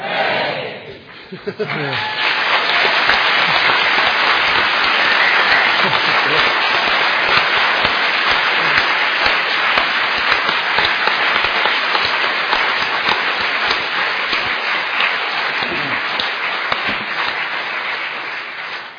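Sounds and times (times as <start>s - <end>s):
hall audience cheering for newly ordained nuns: 0.0s - 18.5s
laughter: 1.0s - 9.6s, 15.6s - 17.3s.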